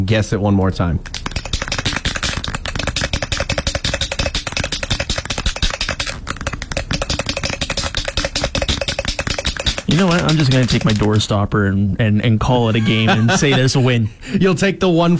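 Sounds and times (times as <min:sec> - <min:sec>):
speech: 0:00.0 - 0:01.2, 0:09.9 - 0:15.1
paint can shaken with mixing bead rattling: 0:01.0 - 0:11.4
laughter: 0:12.6 - 0:14.2.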